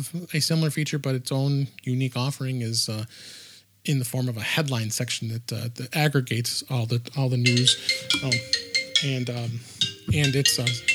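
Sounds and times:
speech: 0.0s - 10.9s
iPhone ringtone ringing: 7.5s - 10.9s.

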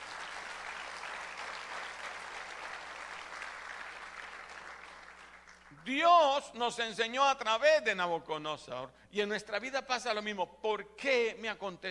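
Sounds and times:
audience applause: 0.0s - 5.8s
speech: 5.8s - 11.9s.

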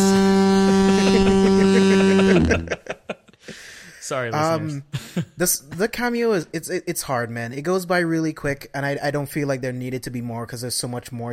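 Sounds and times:
foghorn sound effect: 0.0s - 2.8s
laughter: 0.7s - 3.8s
speech: 4.1s - 11.3s.

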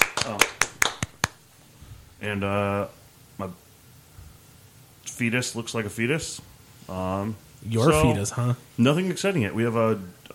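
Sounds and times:
sharp hand claps: 0.0s - 1.4s
speech: 2.2s - 3.6s, 5.1s - 10.3s.

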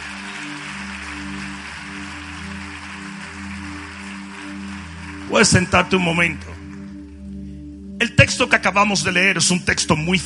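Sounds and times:
audience applause: 0.0s - 6.9s
speech: 5.3s - 6.6s, 8.0s - 10.2s.

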